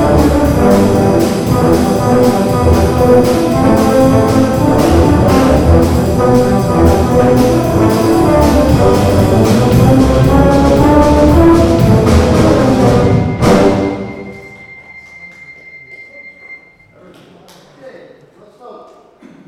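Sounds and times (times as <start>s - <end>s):
low brass playing: 0.0s - 14.7s.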